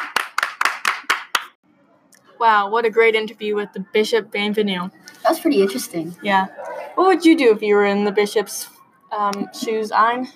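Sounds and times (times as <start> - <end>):
clapping: 0.0 - 1.6
speech: 2.4 - 10.3.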